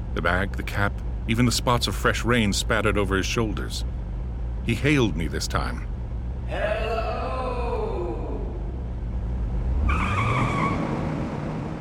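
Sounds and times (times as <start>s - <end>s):
car engine roaring with a heavy low rumble: 0.0s - 11.7s
speech: 0.2s - 3.9s, 4.7s - 5.9s, 6.5s - 6.9s
tires squealing as the car accelerates hard: 6.5s - 11.7s.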